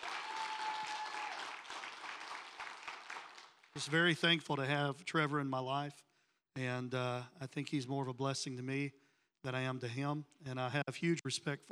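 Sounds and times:
audience hand clapping: 0.0s - 4.3s
speech: 3.8s - 11.7s.

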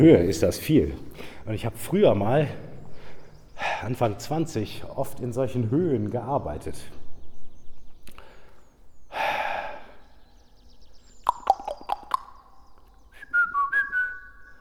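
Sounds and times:
speech: 0.0s - 2.7s, 3.6s - 7.0s
burst of breathy noise: 8.2s - 10.2s
claps in tall reinforced-concrete space: 11.3s - 12.4s
whistled notes: 11.3s - 14.6s.

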